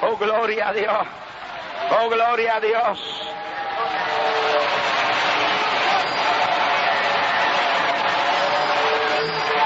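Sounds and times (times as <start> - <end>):
speech: 0.2 - 4.0
crowd voices: 0.8 - 9.6
audience applause: 3.4 - 9.6.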